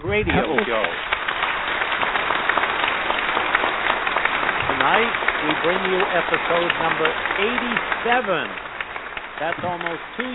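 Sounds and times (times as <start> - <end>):
speech: 0.1 - 1.2, 4.8 - 8.7, 9.4 - 10.3
audience applause: 0.1 - 10.3.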